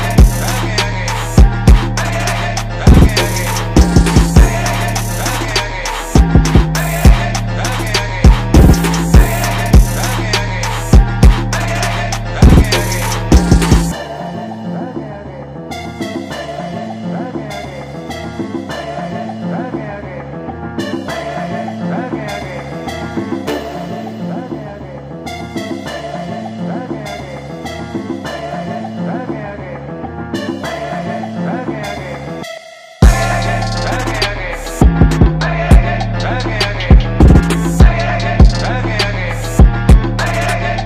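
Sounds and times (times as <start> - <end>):
trap beat mix: 0.0 - 14.3, 33.0 - 40.8.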